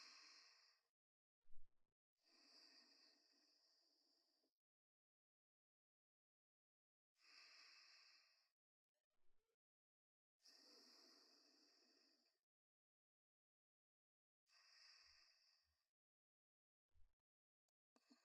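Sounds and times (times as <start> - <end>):
person breathing in sleep: 0.0 - 0.9, 2.2 - 4.4, 7.2 - 8.5, 10.4 - 12.4, 14.5 - 15.7.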